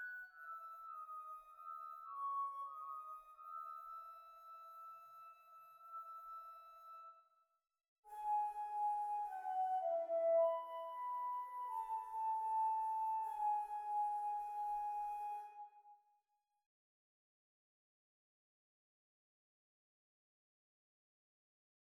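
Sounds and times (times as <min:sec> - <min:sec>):
flute solo: 0:00.0 - 0:07.2, 0:08.1 - 0:16.0.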